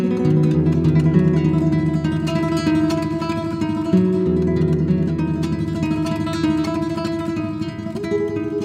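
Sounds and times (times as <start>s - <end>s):
tremolo study: 0.2s - 8.6s.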